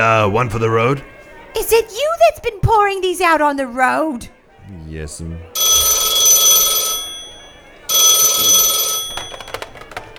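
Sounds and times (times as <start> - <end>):
speech: 0.0 - 5.5
telephone ringing with buzzing electric bell tone: 5.6 - 10.1
faint clicks and rattles: 9.0 - 10.1.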